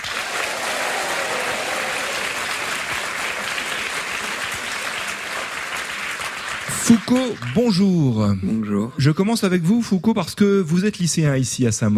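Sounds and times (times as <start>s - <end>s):
studio audience applause: 0.0s - 8.0s
speech: 6.9s - 11.9s.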